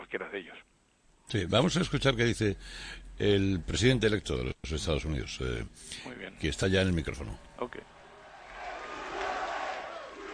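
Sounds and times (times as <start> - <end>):
speech: 0.1 - 8.0
crowd applauding Donald Trump: 8.0 - 10.3.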